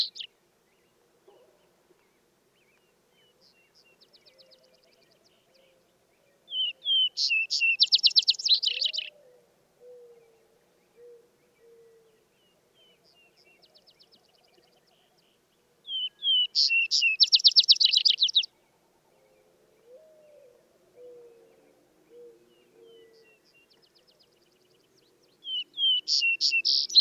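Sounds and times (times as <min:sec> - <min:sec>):
Vesper sparrow singing with buzzy trill: 0:00.0 - 0:00.3, 0:06.6 - 0:09.1, 0:15.9 - 0:18.5, 0:25.4 - 0:26.9.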